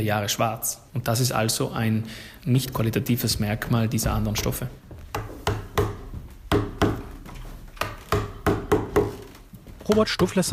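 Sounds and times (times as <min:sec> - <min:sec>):
speech: 0:00.0 - 0:05.0, 0:09.9 - 0:10.5
hammer and chisel carving wooden statue: 0:04.0 - 0:10.2.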